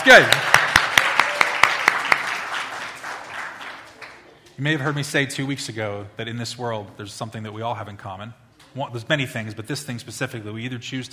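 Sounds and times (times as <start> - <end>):
speech: 0.0 - 0.5, 4.6 - 11.1
audience applause: 0.0 - 5.0.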